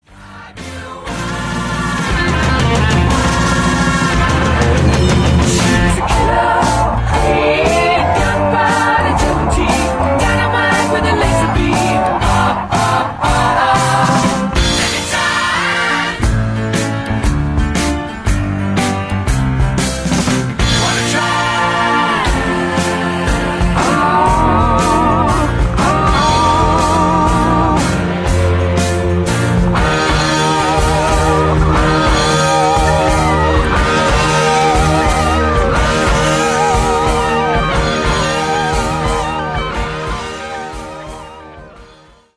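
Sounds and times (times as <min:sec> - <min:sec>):
instrumental music: 0:00.3 - 0:42.3.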